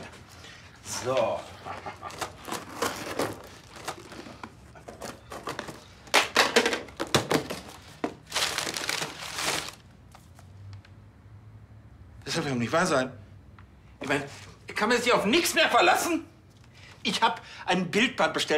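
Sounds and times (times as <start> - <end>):
speech: 1.0 - 2.2, 12.4 - 13.2, 14.0 - 16.3, 17.0 - 18.5
parcel packaging being cut and torn open: 1.2 - 5.9, 6.8 - 10.4.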